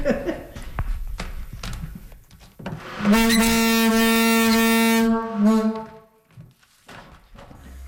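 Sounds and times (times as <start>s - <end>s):
laughter: 0.0s - 0.7s
very loud foghorn box blast in St. Martin's: 2.8s - 6.1s.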